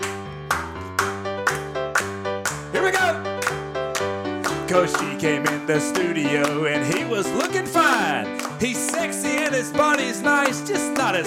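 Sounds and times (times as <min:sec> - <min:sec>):
hand clapping: 0:00.0 - 0:11.2
speech: 0:02.8 - 0:03.3, 0:04.7 - 0:11.2.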